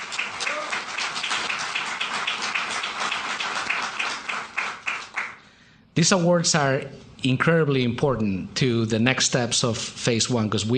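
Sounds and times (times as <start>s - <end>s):
audience applause: 0.0s - 5.4s
speech: 6.0s - 10.7s.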